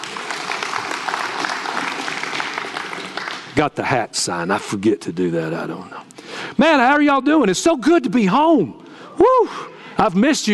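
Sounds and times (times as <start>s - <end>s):
applause: 0.0s - 3.6s
speech: 3.6s - 10.5s.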